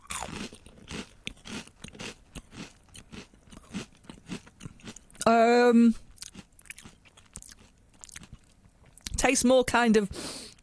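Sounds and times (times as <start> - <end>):
crisp-like snack crunching as it is bitten and chewed: 0.0 - 5.3, 6.1 - 9.1
speech: 5.3 - 6.0, 9.3 - 10.4.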